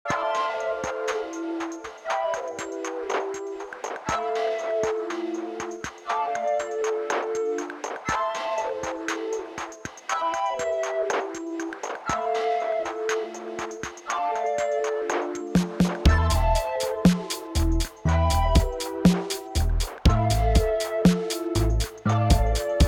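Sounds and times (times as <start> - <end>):
flutists playing: 0.1 - 22.8.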